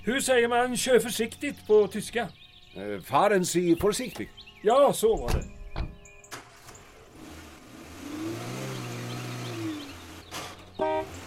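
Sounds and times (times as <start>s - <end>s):
speech: 0.0s - 5.6s
sharp clunks: 5.2s - 6.9s
car engine driving off: 6.3s - 11.2s.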